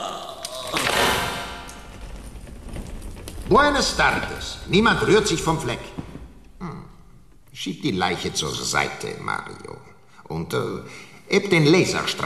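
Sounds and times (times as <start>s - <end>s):
door being opened: 0.4s - 7.5s
speech: 3.5s - 6.0s, 7.6s - 12.2s.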